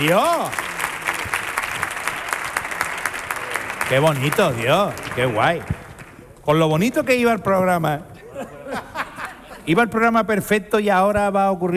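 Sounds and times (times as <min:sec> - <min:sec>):
speech: 0:00.0 - 0:00.7, 0:03.9 - 0:05.8, 0:06.4 - 0:08.1, 0:09.6 - 0:11.7
radio show studio audience applauding its guests: 0:00.0 - 0:06.2
laughter: 0:08.2 - 0:09.9.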